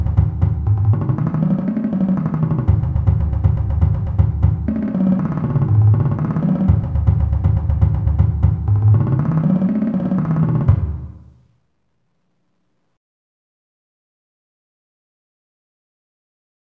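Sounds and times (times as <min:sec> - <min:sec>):
fast marching bass drums warm-up: 0:00.0 - 0:11.3.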